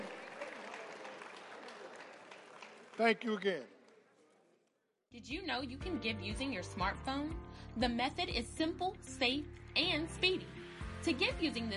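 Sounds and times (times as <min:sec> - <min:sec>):
audience clapping: 0:00.0 - 0:04.6
speech: 0:03.0 - 0:03.8, 0:05.1 - 0:11.7.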